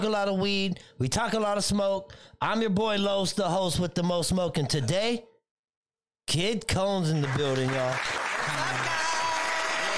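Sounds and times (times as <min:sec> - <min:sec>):
speech: 0:00.0 - 0:05.3, 0:06.3 - 0:09.1
crowd applause: 0:07.2 - 0:09.9.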